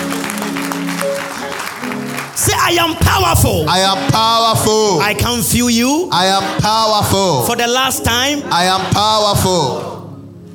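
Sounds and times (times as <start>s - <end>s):
audience clapping hands: 0.0s - 4.2s
speech: 2.7s - 10.0s.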